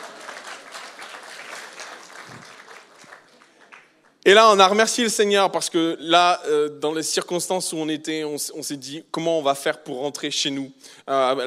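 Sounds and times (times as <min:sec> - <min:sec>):
audience applause: 0:00.0 - 0:04.1
speech: 0:04.2 - 0:11.4.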